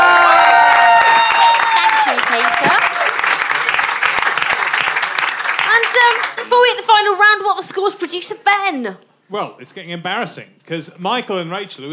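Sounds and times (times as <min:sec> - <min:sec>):
whoops and cheers: 0:00.0 - 0:03.2
crowd clapping: 0:00.0 - 0:07.0
speech: 0:07.8 - 0:11.9.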